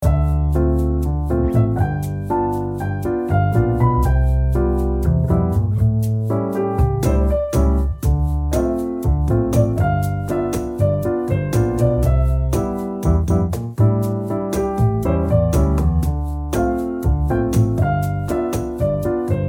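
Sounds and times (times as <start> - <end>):
relaxing tea time piano and strings loop for work and study: 0.0 - 19.4.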